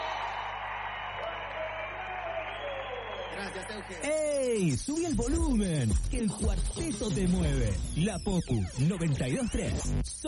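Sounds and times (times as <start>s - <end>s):
crowd clapping: 0.0s - 4.8s
speech: 3.4s - 10.2s.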